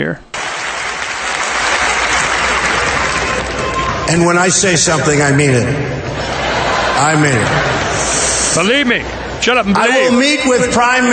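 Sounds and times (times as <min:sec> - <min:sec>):
speech: 0:00.0 - 0:00.3, 0:04.1 - 0:06.4, 0:07.0 - 0:11.1
AIPAC crowd applause: 0:00.4 - 0:05.2, 0:06.1 - 0:08.5
laughter: 0:06.0 - 0:09.8.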